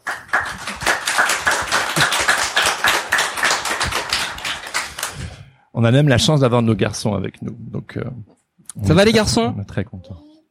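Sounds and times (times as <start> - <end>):
applause welcoming guests: 0.0 - 5.4
speech: 5.8 - 10.3.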